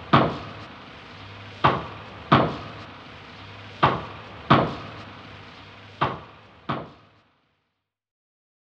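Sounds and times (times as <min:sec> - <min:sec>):
two people chopping wood: 0:00.1 - 0:00.4, 0:01.6 - 0:02.6, 0:03.8 - 0:04.8, 0:06.0 - 0:07.0.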